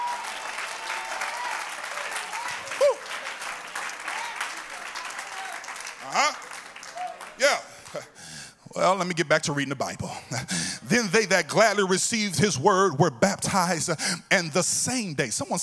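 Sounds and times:
audience clapping hands: 0.0 - 8.3
speech: 8.8 - 15.6.

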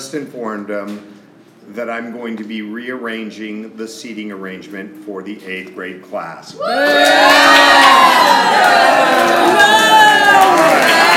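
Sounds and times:
speech: 0.1 - 9.8
audience booing: 6.6 - 11.1.

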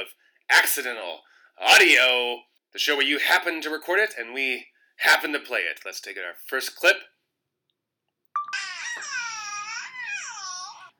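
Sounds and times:
speech: 0.5 - 7.1
baby babbling: 8.4 - 10.9.

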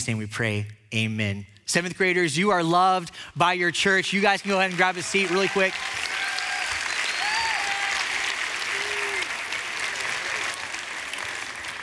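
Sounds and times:
speech: 0.0 - 6.0
audience applause: 4.2 - 11.8.

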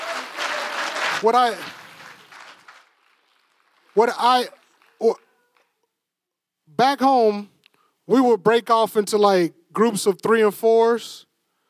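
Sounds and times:
audience applause: 0.0 - 5.7
speech: 1.2 - 1.8, 4.0 - 5.2, 6.7 - 7.5, 8.1 - 11.3.

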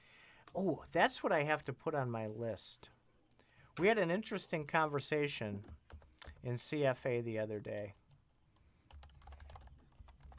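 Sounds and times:
speech: 0.5 - 3.0, 3.8 - 5.8, 6.4 - 8.0
typing on a computer keyboard: 5.6 - 6.4, 7.8 - 10.3.

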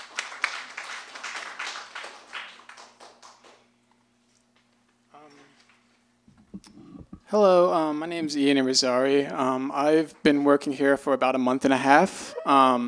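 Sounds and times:
small group clapping: 0.0 - 3.8
speech: 7.3 - 12.8.

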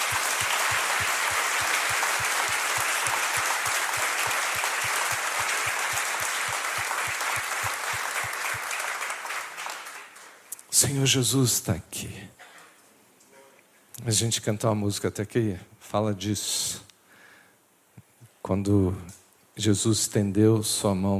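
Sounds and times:
audience applause: 0.0 - 10.5
speech: 10.8 - 12.4, 14.1 - 16.8, 18.5 - 21.1.

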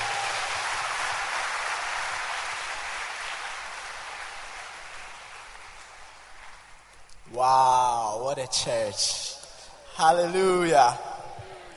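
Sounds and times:
audience clapping hands: 0.0 - 7.1
speech: 7.3 - 9.3, 10.0 - 11.1.

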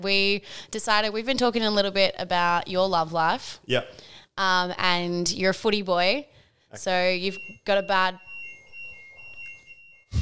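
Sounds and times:
speech: 0.0 - 8.3
fire alarm going off: 6.9 - 10.2.

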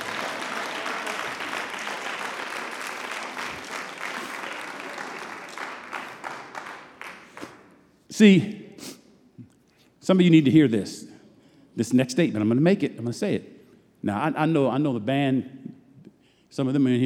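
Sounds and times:
crowd applauding: 0.0 - 7.8
speech: 8.2 - 8.9, 10.1 - 11.1, 11.8 - 15.7, 16.5 - 17.0.

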